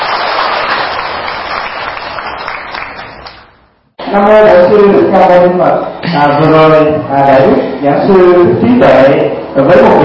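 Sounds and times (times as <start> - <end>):
audience applause: 0.0 - 3.4
speech: 4.1 - 10.0.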